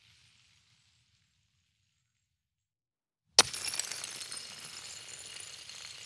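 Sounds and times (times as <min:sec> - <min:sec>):
ice sliding: 0:03.4 - 0:05.1
ice dropping and shattering outdoors: 0:03.4 - 0:05.9.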